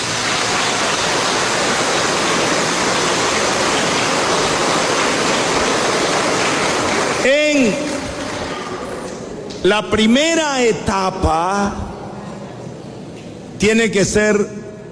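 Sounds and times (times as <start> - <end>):
audience applause: 0.0 - 9.4
speech: 9.6 - 11.8, 13.6 - 14.7.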